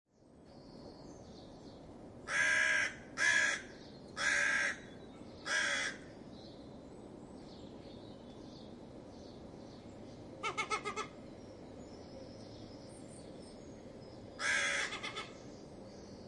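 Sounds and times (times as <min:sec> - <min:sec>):
crow giving alarm calls because of a fox: 0:02.3 - 0:06.1, 0:14.4 - 0:15.4.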